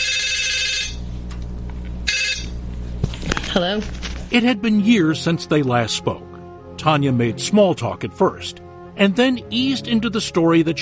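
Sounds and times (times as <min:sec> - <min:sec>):
telephone ringing on an outgoing call: 0:00.0 - 0:01.1, 0:02.0 - 0:02.6
speech: 0:03.6 - 0:10.7.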